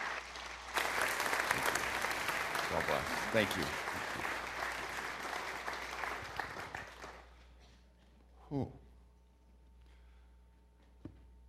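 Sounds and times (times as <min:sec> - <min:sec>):
church congregation applauding a guest reverend: 0:00.0 - 0:07.4
speech: 0:03.3 - 0:03.8.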